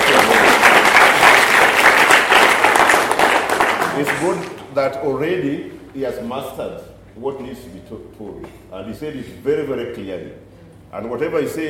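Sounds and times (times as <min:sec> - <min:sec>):
audience applause: 0:00.0 - 0:04.6
speech: 0:04.0 - 0:11.6.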